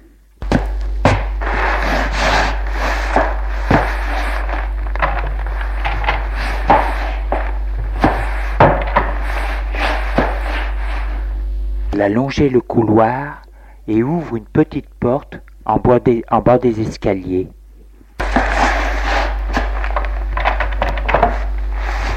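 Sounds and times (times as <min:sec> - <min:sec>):
heavy body dragged across a wooden floor: 0:01.0 - 0:11.4, 0:18.2 - 0:22.1
speech: 0:12.0 - 0:17.6.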